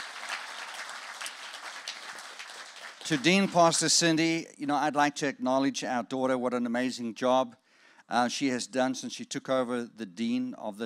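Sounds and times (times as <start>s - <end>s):
audience round of applause: 0.0s - 4.0s
speech: 3.0s - 10.8s.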